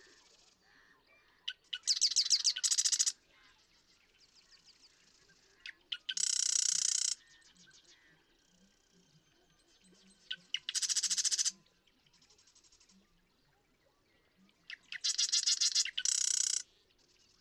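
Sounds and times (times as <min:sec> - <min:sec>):
faint twittering in the background: 0:00.0 - 0:03.5, 0:04.2 - 0:17.3
Marsh Wren song with ticks and harsh buzzing rattle: 0:02.0 - 0:03.1, 0:06.1 - 0:07.2, 0:10.6 - 0:11.5, 0:15.0 - 0:16.6.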